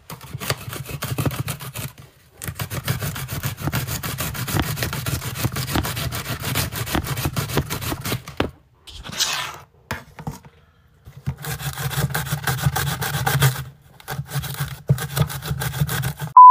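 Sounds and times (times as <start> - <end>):
grating ginger on a mandolin slicer: 0.3 - 8.1, 11.3 - 16.3.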